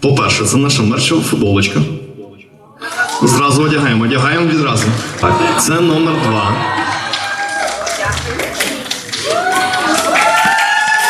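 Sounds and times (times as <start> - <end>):
speech: 0.0 - 2.0, 2.8 - 6.8
audience applause: 4.6 - 11.0.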